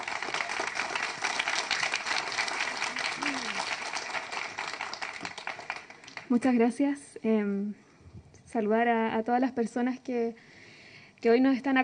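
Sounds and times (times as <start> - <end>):
audience applause: 0.0 - 6.4
speech: 6.3 - 7.8, 8.5 - 10.5, 11.2 - 11.8.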